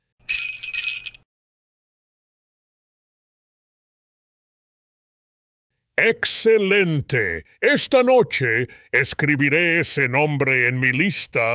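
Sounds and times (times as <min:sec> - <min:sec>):
sleigh bells jingling: 0:00.3 - 0:01.2
speech: 0:06.0 - 0:11.5.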